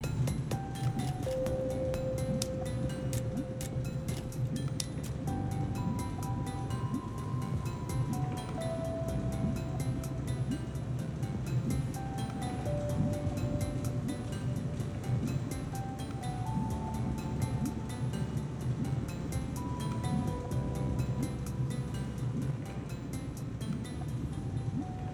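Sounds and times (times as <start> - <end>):
reduced percussion: 0.0 - 25.0.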